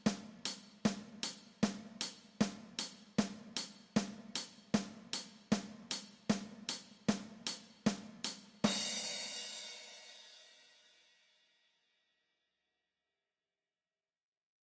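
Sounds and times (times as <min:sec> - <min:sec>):
drum kit with percussion: 0:00.0 - 0:10.4.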